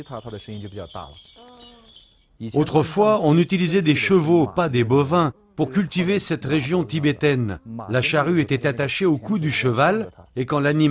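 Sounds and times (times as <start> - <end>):
speech: 0.0 - 1.5, 2.4 - 10.8
large bells being shaken: 0.0 - 3.9, 8.6 - 10.8.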